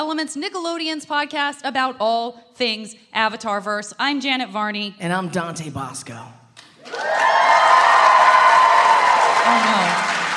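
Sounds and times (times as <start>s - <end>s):
speech: 0.0s - 7.3s, 9.5s - 10.2s
audience cheering: 6.8s - 10.3s.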